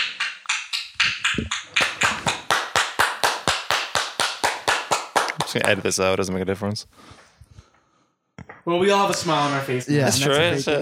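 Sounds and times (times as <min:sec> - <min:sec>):
sharp hand claps: 0:00.0 - 0:05.8
speech: 0:01.4 - 0:01.6, 0:05.5 - 0:07.2, 0:08.7 - 0:10.8.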